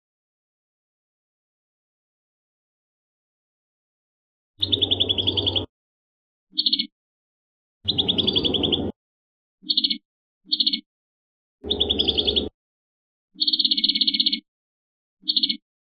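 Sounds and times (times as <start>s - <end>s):
prinia singing trills: 4.6s - 5.7s, 6.5s - 6.9s, 7.9s - 9.0s, 9.6s - 10.9s, 11.6s - 12.6s, 13.4s - 14.5s, 15.2s - 15.6s.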